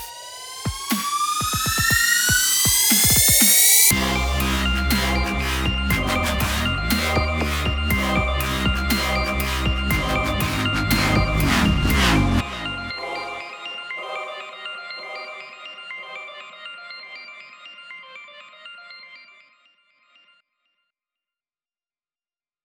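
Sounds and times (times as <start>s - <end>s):
dubstep mix: 0.0s - 16.4s.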